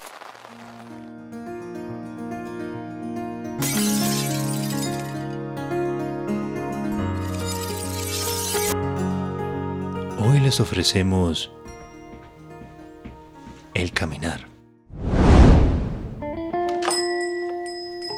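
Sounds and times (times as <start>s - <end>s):
music bed: 0.6s - 14.9s, 16.1s - 18.1s
speech: 3.6s - 4.0s, 10.5s - 11.6s
glass shattering: 3.6s - 5.1s, 7.2s - 8.8s.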